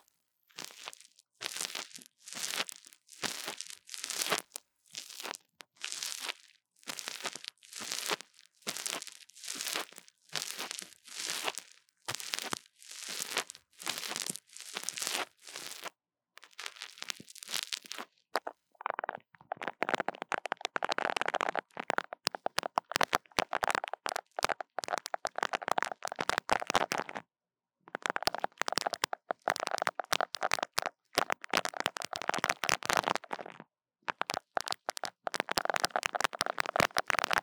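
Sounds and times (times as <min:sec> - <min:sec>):
tapping and scratching on a mini mic: 0:00.6 - 0:27.3, 0:27.9 - 0:37.4.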